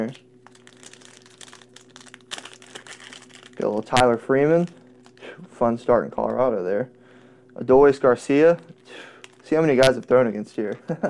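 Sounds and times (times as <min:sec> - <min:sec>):
speech: 0:00.0 - 0:00.3, 0:03.6 - 0:04.8, 0:05.6 - 0:07.0, 0:07.6 - 0:11.0
wrapper crinkling as a pack of Topps 2026 Series 1 baseball cards is opened: 0:00.4 - 0:05.4, 0:09.0 - 0:10.0.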